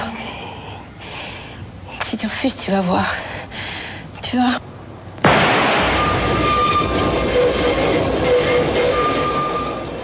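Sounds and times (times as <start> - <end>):
speech: 2.2 - 3.3, 4.3 - 4.7
subway train running heard from inside: 5.3 - 10.0.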